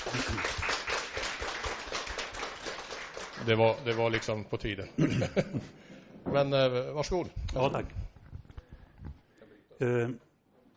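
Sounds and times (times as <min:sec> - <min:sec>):
welcoming applause: 0:00.0 - 0:04.5
speech: 0:00.1 - 0:00.6, 0:03.4 - 0:08.0, 0:09.8 - 0:10.2.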